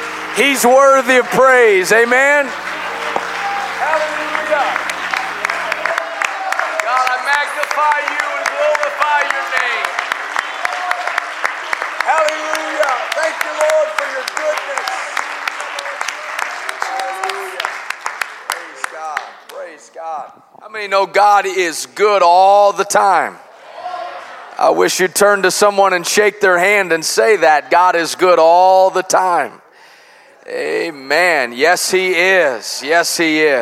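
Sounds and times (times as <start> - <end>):
audience clapping and applauding: 0.0 - 20.4
speech: 0.4 - 2.7, 3.8 - 4.9, 12.0 - 14.8, 19.9 - 23.4, 24.6 - 29.6, 30.4 - 33.5.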